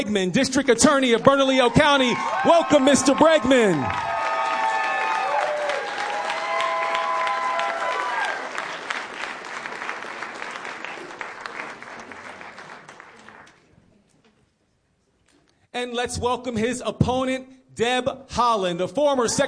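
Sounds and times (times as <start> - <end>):
speech: 0.0 - 4.1, 15.8 - 19.4
audience applause and cheering for debate candidates coming on stage: 1.2 - 13.5.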